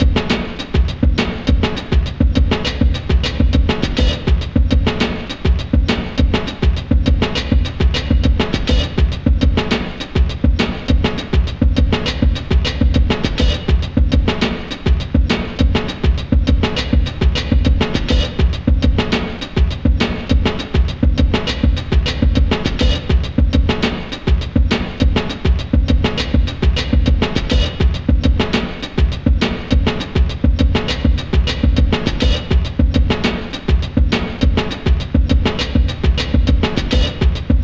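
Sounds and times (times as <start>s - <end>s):
drums: 0.0s - 37.6s.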